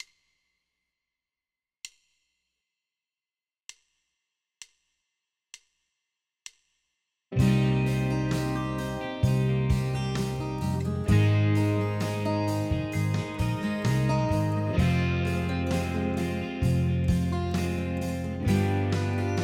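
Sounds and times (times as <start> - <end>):
minor chord progression: 7.4 - 19.4.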